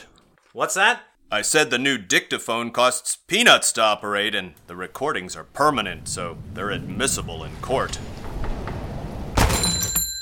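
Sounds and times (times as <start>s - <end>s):
speech: 0.5s - 8.1s
door swinging open with a loud bang: 7.8s - 10.1s
short metallic ringing: 9.4s - 10.2s.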